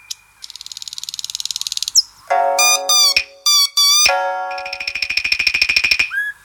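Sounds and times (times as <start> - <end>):
nightingale song phone tone: 2.3 - 6.1.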